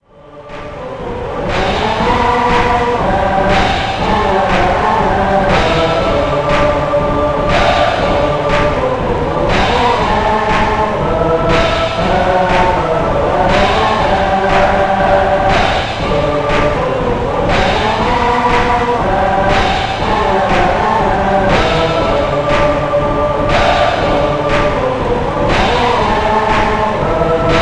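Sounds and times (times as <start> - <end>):
chanting: 0.0 - 27.6.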